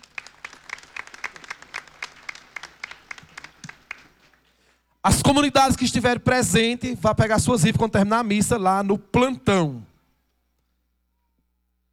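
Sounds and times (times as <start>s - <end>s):
room full of people applauding: 0.0s - 4.4s
speech: 5.0s - 9.9s.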